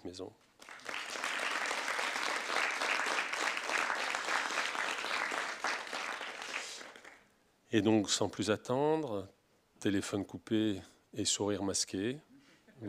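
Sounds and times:
speech: 0:00.0 - 0:00.5, 0:07.7 - 0:12.8
audience applause: 0:00.6 - 0:07.2.

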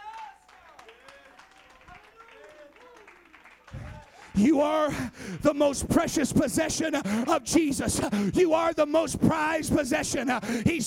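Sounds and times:
people clapping hands in praise: 0:00.0 - 0:06.1
speech: 0:04.4 - 0:10.8.

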